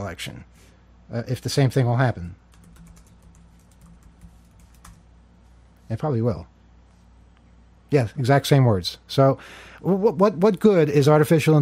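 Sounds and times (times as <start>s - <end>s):
speech: 0.0s - 2.4s, 5.9s - 6.5s, 7.9s - 11.6s
low steady hum: 0.0s - 11.6s
typing on a computer keyboard: 2.5s - 5.1s.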